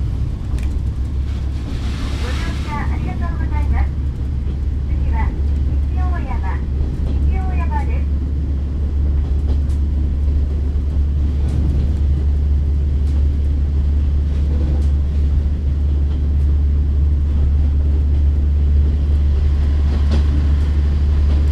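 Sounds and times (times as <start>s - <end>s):
train rumble on the JR Kyushu Ibusukimakurazaki Line: 0.0s - 21.5s.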